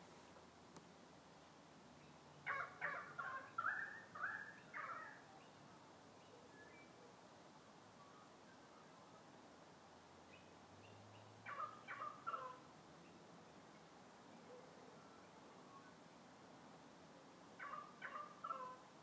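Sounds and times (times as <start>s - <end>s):
currawong calling loudly: 2.4s - 5.3s, 11.2s - 12.7s, 17.6s - 18.9s.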